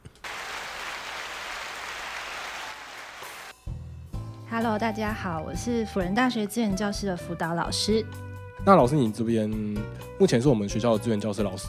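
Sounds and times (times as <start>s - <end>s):
applause: 0.0s - 3.6s
speech: 4.5s - 11.6s.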